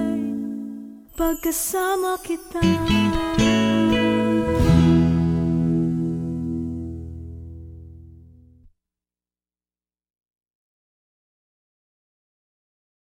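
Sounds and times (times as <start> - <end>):
acoustic music: 0.0 - 8.7.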